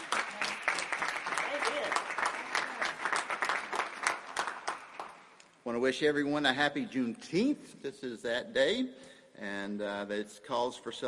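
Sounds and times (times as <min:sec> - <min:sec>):
round of applause: 0:00.0 - 0:05.4
speech: 0:05.7 - 0:11.0.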